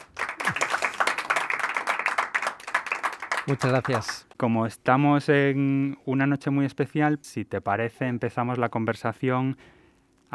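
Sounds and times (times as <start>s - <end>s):
crowd applause: 0.0s - 4.3s
speech: 3.4s - 10.3s.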